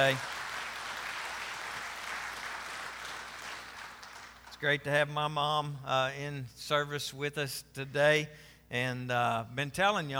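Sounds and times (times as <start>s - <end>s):
speech: 0.0s - 0.3s, 4.6s - 10.1s
audience applause: 0.0s - 4.8s.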